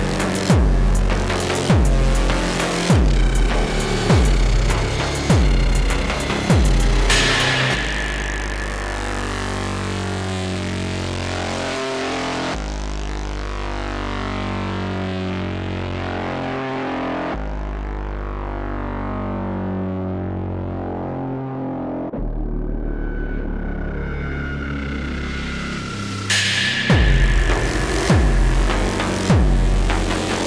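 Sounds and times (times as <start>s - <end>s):
industrial techno music: 0.0s - 30.4s.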